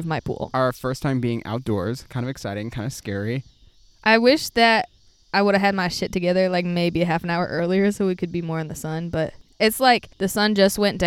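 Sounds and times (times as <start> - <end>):
cicadas buzzing outdoors at dusk by a pool: 0.0 - 11.0
speech: 0.0 - 11.0.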